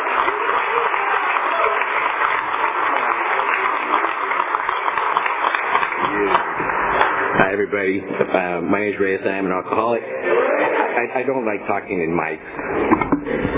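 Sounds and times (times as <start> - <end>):
audience applause: 0.0 - 8.4
speech: 7.7 - 13.5.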